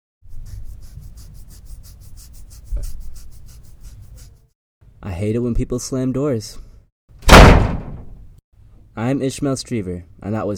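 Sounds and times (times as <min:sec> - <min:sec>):
kids scratching skin hard: 0:00.2 - 0:04.5
speech: 0:05.0 - 0:06.7, 0:09.0 - 0:10.5.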